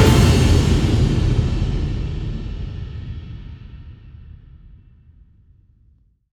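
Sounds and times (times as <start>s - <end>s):
battle finale music: 0.0s - 2.7s.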